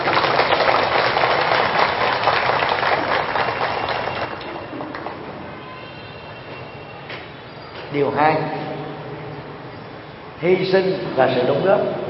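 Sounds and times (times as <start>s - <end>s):
audience applause: 0.0s - 5.2s
speech: 8.0s - 8.6s, 10.4s - 12.0s.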